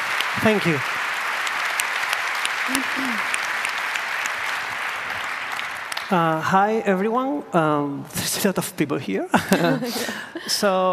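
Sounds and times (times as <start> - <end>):
audience applause: 0.0 - 6.5
speech: 0.4 - 0.9, 2.7 - 3.3, 6.1 - 10.9
laughter: 9.3 - 10.6.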